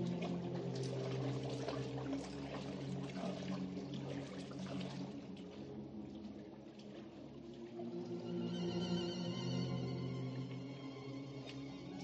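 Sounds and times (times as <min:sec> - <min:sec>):
water sloshing and splashing as a woman swims across a wide river: 0:00.0 - 0:08.5
low tonal drone: 0:00.0 - 0:12.0.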